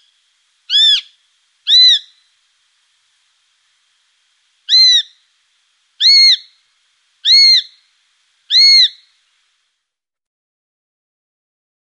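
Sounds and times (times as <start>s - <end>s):
Eurasian sparrowhawk shrill calls: 0.7s - 2.2s, 4.7s - 5.2s, 6.0s - 6.6s, 7.2s - 7.8s, 8.5s - 9.1s.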